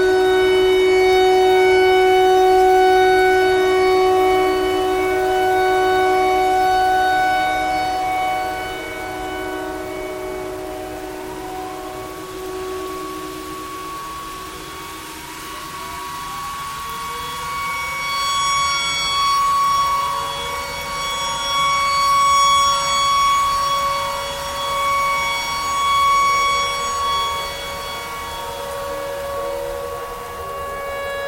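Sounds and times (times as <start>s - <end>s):
tornado siren: 0.0s - 31.2s.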